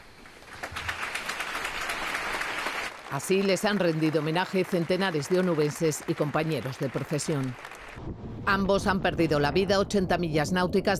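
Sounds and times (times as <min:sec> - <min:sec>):
applause at a funeral: 0:00.0 - 0:08.0
speech: 0:03.1 - 0:10.9.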